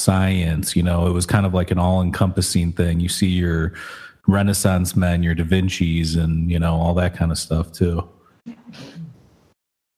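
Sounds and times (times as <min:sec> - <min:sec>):
speech: 0:00.0 - 0:09.0
sneeze: 0:08.5 - 0:09.2.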